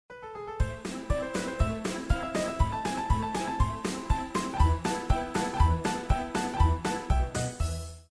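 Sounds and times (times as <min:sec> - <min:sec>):
circus music: 0:00.3 - 0:08.0.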